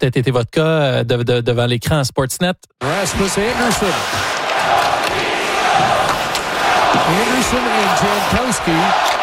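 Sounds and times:
speech: 0.0s - 5.2s, 5.8s - 6.2s, 7.0s - 9.2s
hockey crowd booing the goalie: 2.8s - 9.2s.

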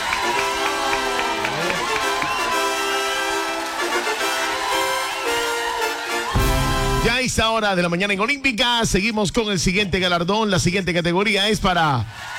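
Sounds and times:
loud audience applause: 0.0s - 7.1s, 12.1s - 12.3s
cheering voices: 0.0s - 7.6s, 11.8s - 12.3s
speech: 7.3s - 12.3s.

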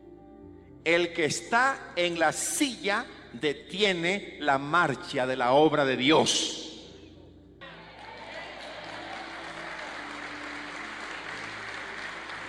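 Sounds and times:
low musical hum: 0.0s - 7.7s
speech: 0.8s - 6.7s
audience applauding: 7.6s - 12.4s.

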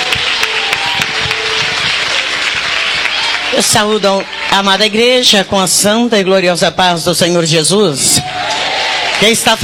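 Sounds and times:
crowd applauding: 0.0s - 5.4s, 8.2s - 9.6s
speech: 3.5s - 9.6s.

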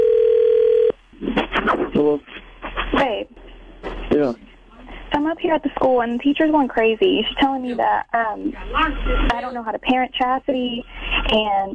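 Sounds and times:
telephone tone: 0.0s - 1.0s
speech: 2.0s - 3.2s, 4.2s - 4.5s, 5.3s - 11.7s.

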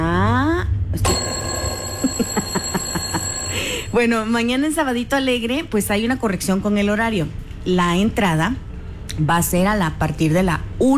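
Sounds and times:
alarm clock ringing: 1.0s - 4.2s
speech: 4.0s - 10.9s.

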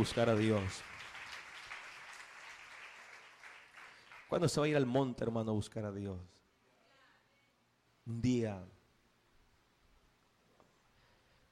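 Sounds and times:
speech: 0.0s - 1.0s, 4.3s - 6.4s, 8.0s - 8.8s
congregation clapping in praise in a church service: 0.0s - 5.0s.

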